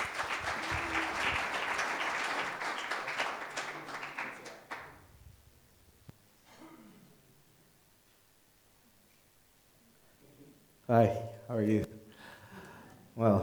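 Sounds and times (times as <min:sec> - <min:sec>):
crowd applauding: 0:00.0 - 0:05.1
speech: 0:10.9 - 0:11.9.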